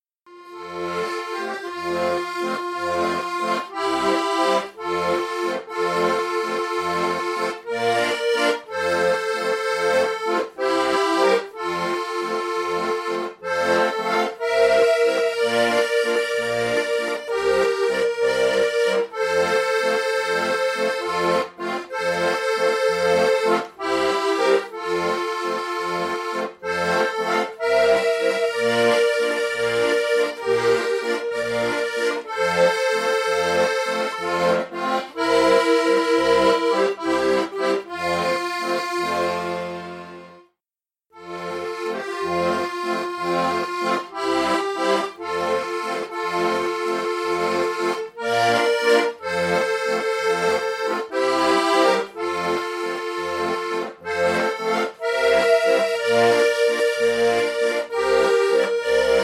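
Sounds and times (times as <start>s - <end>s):
song in CF: 0.3s - 40.6s, 41.2s - 59.2s.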